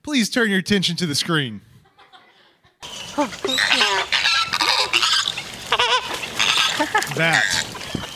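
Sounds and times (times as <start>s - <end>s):
speech: 0.1s - 1.7s, 3.2s - 4.2s, 6.8s - 7.7s
laughter: 1.8s - 2.8s, 6.7s - 7.5s
flamingo call: 2.8s - 8.1s.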